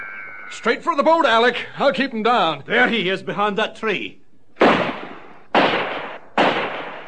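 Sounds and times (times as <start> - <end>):
speech: 0.5 - 4.2
gunshot: 4.6 - 7.0.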